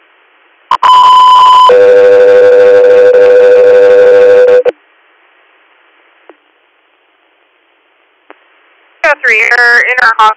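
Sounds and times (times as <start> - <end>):
two-tone radio dispatch alert tones: 0.7 - 4.7
speech: 9.4 - 10.3.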